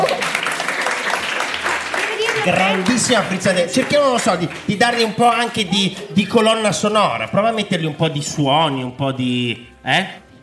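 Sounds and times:
applause from a class: 0.0 - 6.7
speech: 2.4 - 10.2.

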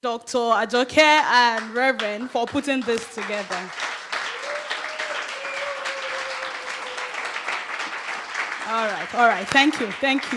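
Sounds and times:
speech: 0.0 - 3.9, 8.7 - 10.3
crowd applauding: 1.4 - 10.3.

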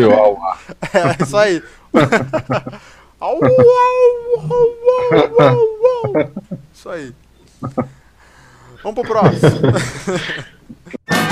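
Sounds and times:
laughter: 0.0 - 6.6, 7.5 - 8.0, 8.9 - 11.0
speech: 0.0 - 8.0, 8.8 - 10.5
voices imitating wolves howling at the moon: 3.4 - 6.3.

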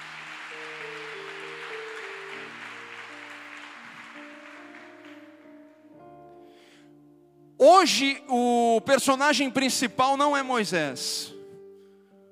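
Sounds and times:
audience applause: 0.0 - 5.6
speech: 7.6 - 11.3.

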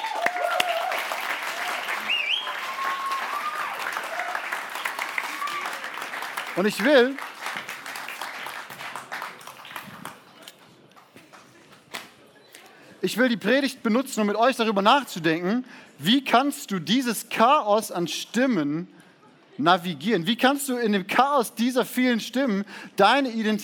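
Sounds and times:
crowd applauding: 0.0 - 11.5
speech: 6.6 - 7.3, 13.0 - 19.0, 19.6 - 23.6.

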